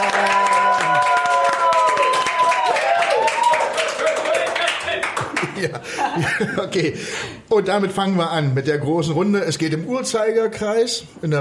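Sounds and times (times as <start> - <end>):
group applause: 0.0 - 6.0
laughter: 4.0 - 7.0
speech: 6.2 - 11.4.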